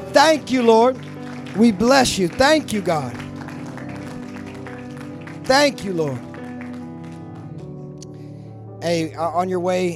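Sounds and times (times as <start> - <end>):
audience applauding: 0.0 - 7.7
speech: 0.2 - 3.2, 5.5 - 6.3, 8.8 - 9.9.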